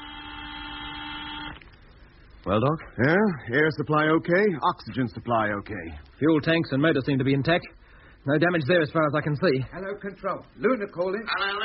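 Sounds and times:
spacecraft cabin alarm buzzer: 0.0s - 1.6s
speech: 2.4s - 11.6s.

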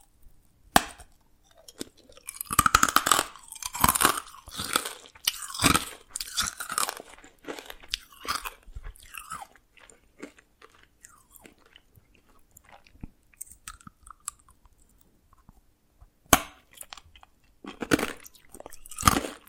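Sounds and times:
Dalgona candy tapped and cracked: 0.8s - 15.5s, 16.3s - 19.4s.

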